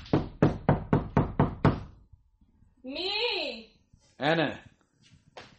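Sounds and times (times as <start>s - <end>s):
knocking on the door of a second-floor home: 0.1s - 2.0s
speech: 4.2s - 4.7s.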